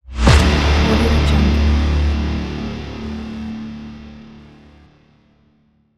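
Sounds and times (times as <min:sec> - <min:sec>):
distorted guitar impact: 0:00.2 - 0:03.5.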